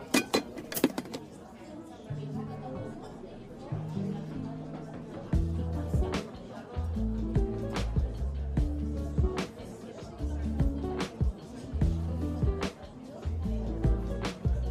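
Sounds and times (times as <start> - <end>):
cups and dishes clinking: 0.0 - 1.3
coffee shop murmur of talk: 0.0 - 14.7
music with low stepping bass line: 5.4 - 6.1, 6.9 - 9.4, 10.3 - 10.9, 11.8 - 12.6, 13.3 - 14.7.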